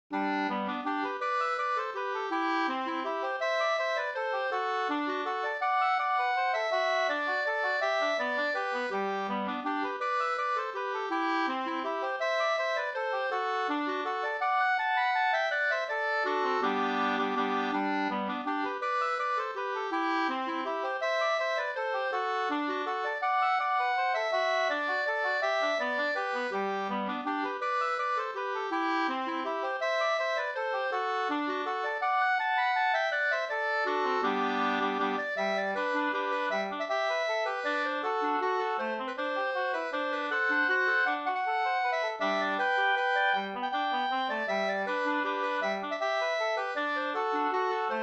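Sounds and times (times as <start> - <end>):
bridal waltz music: 0.1 - 48.0.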